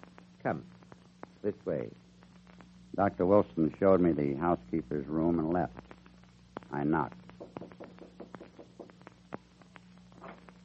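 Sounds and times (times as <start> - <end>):
speech: 0.4 - 0.8, 1.4 - 2.0, 2.9 - 5.9, 6.7 - 7.2
knocking on a door: 7.4 - 9.0.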